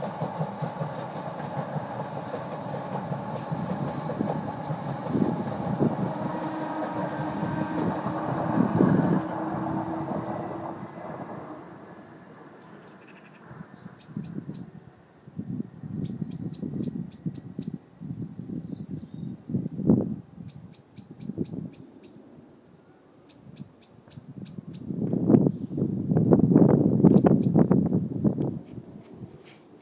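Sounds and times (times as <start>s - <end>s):
train: 0.0s - 29.8s
evening birdsong: 3.3s - 14.8s, 16.0s - 17.8s, 18.5s - 19.7s, 20.5s - 22.2s, 22.8s - 25.9s.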